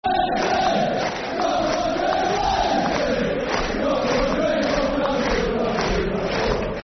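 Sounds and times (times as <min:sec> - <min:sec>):
football crowd chanting: 0:00.0 - 0:06.8.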